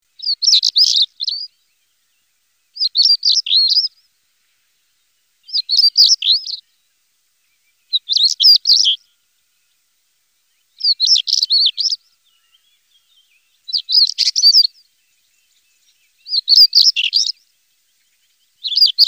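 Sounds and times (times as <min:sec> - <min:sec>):
European stonechat calling: 0:00.2 - 0:01.5, 0:02.8 - 0:03.9, 0:05.5 - 0:06.6, 0:07.9 - 0:09.0, 0:10.8 - 0:12.0, 0:13.7 - 0:14.7, 0:16.3 - 0:17.3, 0:18.6 - 0:19.0.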